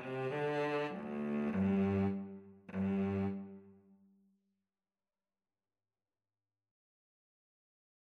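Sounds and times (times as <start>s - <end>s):
violin and cello duet playing a minuet: 0.0s - 3.7s.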